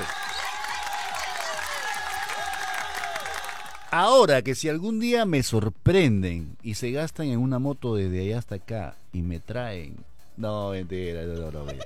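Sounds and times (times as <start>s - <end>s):
audience applause: 0.0s - 4.0s
speech: 3.9s - 11.8s.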